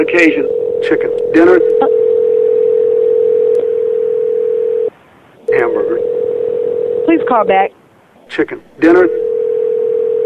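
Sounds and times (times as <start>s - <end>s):
speech: 0.0s - 2.1s, 7.1s - 9.2s
telephone line ringing tone: 0.0s - 4.9s, 5.5s - 7.6s, 8.9s - 10.2s.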